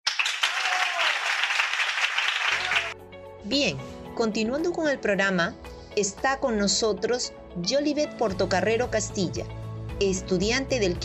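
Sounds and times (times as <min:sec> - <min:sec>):
audience applause: 0:00.0 - 0:03.0
speech: 0:03.5 - 0:11.0.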